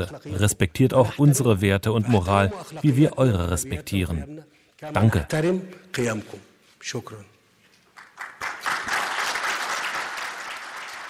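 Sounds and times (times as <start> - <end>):
speech: 0.0 - 7.3
applause at a press conference: 8.0 - 11.0.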